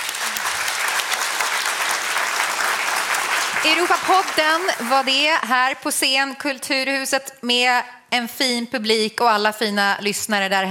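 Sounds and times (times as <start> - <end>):
audience applauding: 0.0 - 5.4
speech: 3.6 - 10.7.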